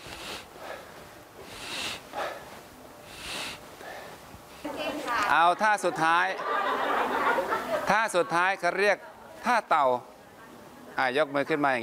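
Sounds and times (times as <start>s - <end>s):
deep breathing through the nose during exercise: 0.0s - 4.7s
laughter: 4.7s - 9.8s
speech: 4.8s - 10.1s, 11.0s - 11.8s.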